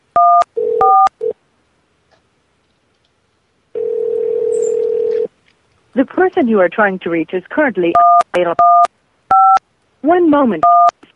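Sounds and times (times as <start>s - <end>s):
telephone keypad dialing tones: 0.2s - 1.3s, 3.8s - 5.3s, 7.9s - 9.6s, 10.6s - 11.0s
speech: 6.0s - 8.7s, 10.0s - 10.8s.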